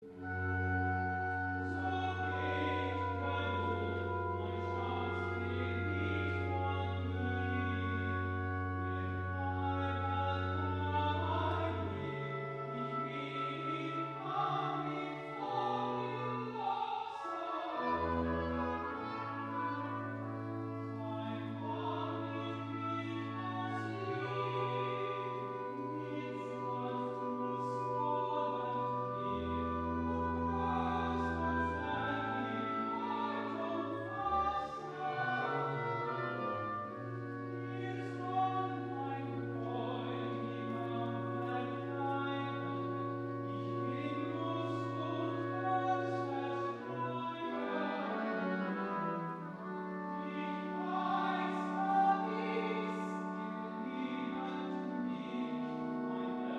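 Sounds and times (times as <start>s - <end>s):
recitative singing: 0.0s - 56.5s.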